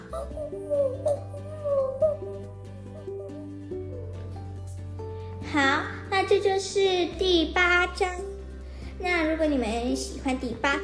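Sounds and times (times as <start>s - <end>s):
owl hooting: 0.0s - 4.1s
speech: 6.4s - 8.3s, 9.0s - 10.8s.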